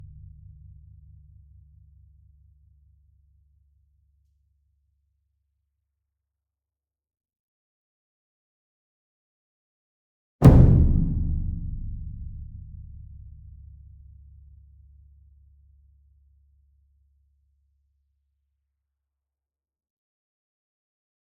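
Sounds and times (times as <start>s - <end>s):
concert bass drum and taiko ensemble drum hit: 10.4s - 13.7s.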